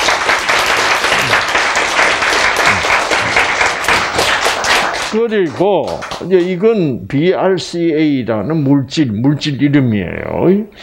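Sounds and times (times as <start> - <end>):
audience applause: 0.0 - 6.5
speech: 5.2 - 10.8.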